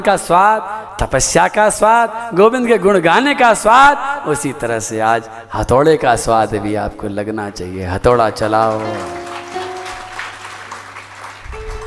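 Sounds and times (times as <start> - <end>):
speech: 0.0 - 9.2
audience clapping: 8.4 - 11.8.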